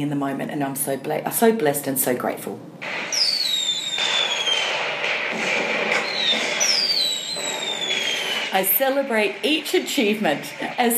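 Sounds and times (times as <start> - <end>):
speech: 0.0 - 3.3, 8.5 - 10.9
fireworks: 2.8 - 10.9.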